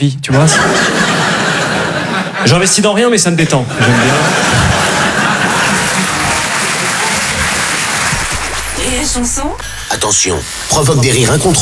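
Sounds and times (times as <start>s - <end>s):
speech: 0.0s - 0.8s, 2.4s - 4.7s, 9.2s - 11.6s
laughter: 0.3s - 8.2s
audience applause: 4.0s - 8.5s.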